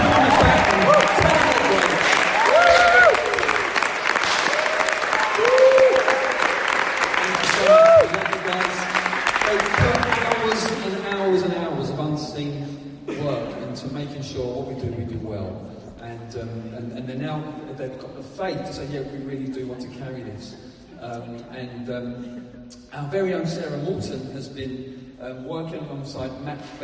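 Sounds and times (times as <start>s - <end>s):
audience applauding the trustees: 0.0s - 11.4s
speech: 20.4s - 26.8s.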